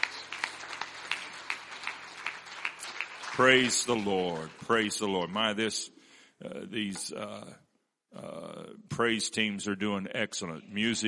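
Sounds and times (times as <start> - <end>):
audience clapping hands: 0.0 - 5.6
speech: 3.4 - 11.0.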